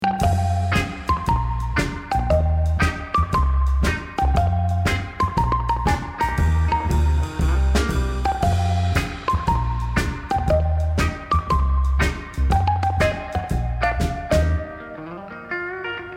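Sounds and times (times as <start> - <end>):
music loop: 0.0 - 15.1.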